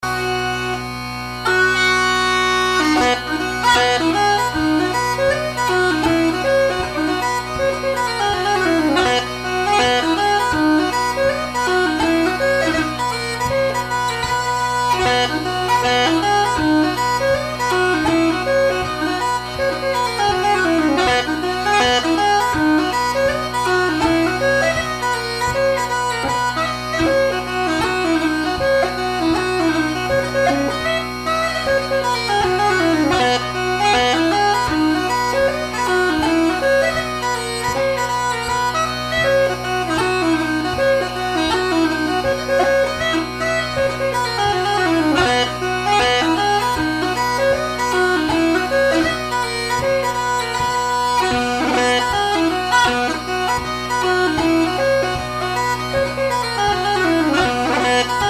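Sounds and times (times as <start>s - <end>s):
hornpipe tune: 0.0s - 58.2s.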